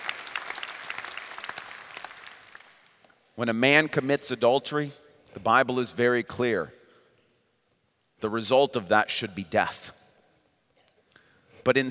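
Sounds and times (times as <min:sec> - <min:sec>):
audience clapping: 0:00.0 - 0:03.0
speech: 0:03.4 - 0:06.8, 0:08.2 - 0:10.0, 0:11.6 - 0:11.8.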